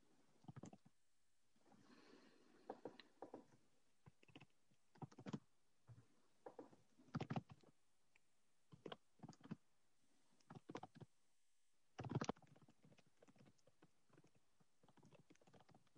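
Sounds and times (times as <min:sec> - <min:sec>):
typing on a computer keyboard during a meeting: 0:00.4 - 0:00.9, 0:02.6 - 0:07.7, 0:08.7 - 0:09.6, 0:10.4 - 0:11.1, 0:12.0 - 0:15.9.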